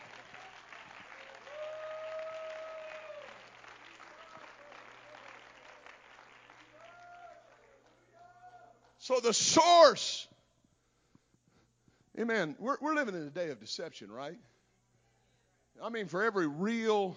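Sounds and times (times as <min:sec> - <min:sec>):
audience clapping hands in praise: 0:00.0 - 0:09.0
speech: 0:09.1 - 0:10.3, 0:12.2 - 0:14.5, 0:15.8 - 0:17.1.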